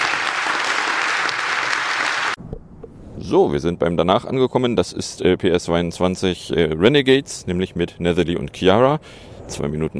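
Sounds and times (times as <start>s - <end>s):
warm audience applause: 0.0s - 2.4s
speech: 3.3s - 9.9s.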